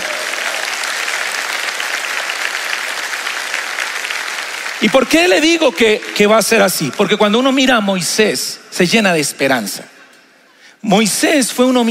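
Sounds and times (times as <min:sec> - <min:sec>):
audience applause: 0:00.0 - 0:07.1
speech: 0:04.8 - 0:10.0, 0:10.8 - 0:11.8.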